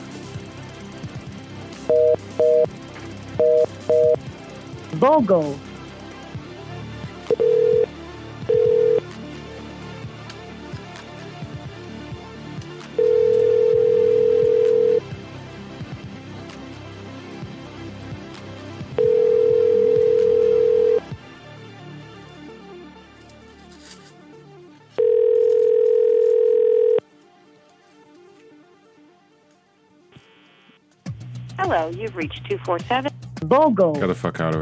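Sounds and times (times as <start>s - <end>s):
landline telephone dial beeps: 1.9s - 2.7s, 3.4s - 4.2s, 7.3s - 7.9s, 8.5s - 9.0s, 13.0s - 15.0s, 19.0s - 21.0s, 25.0s - 27.0s
speech: 1.9s - 2.8s, 5.0s - 5.7s, 31.7s - 34.6s.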